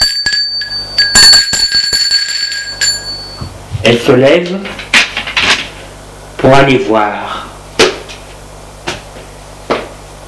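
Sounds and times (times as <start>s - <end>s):
doorbell ringing: 0.0s - 3.5s
speech: 3.9s - 4.8s, 6.4s - 7.4s.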